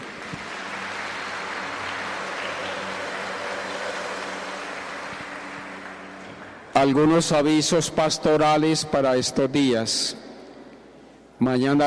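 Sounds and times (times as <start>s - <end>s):
audience applause: 0.0s - 6.7s
speech: 6.8s - 10.2s, 11.4s - 11.8s.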